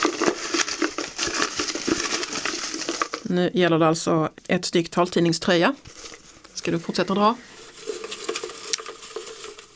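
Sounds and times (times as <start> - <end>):
folded paper slips shaken in trophy cup: 0.0 - 3.3, 7.6 - 9.7
speech: 3.3 - 7.5.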